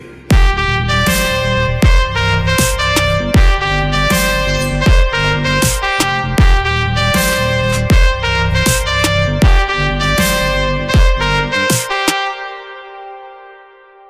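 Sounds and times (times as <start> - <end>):
instrumental background music: 0.0 - 14.0.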